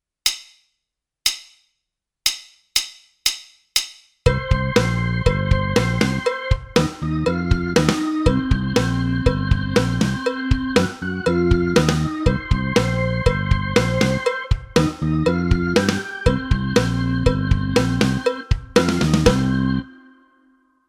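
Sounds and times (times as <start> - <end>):
launch music track: 4.3 - 20.8.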